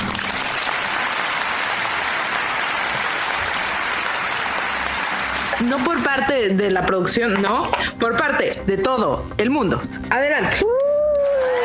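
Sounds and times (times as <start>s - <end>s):
applause: 0.0s - 6.4s, 10.8s - 11.6s
speech: 5.6s - 10.8s.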